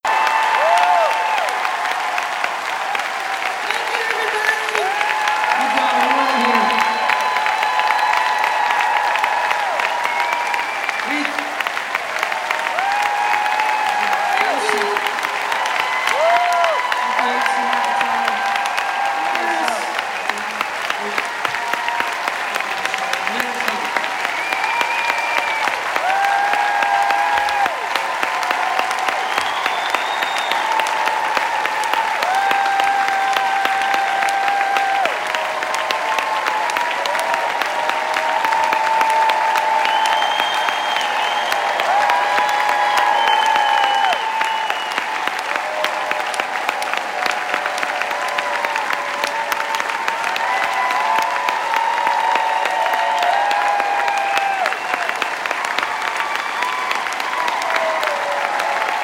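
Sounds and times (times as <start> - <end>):
applause: 0.0 - 59.0.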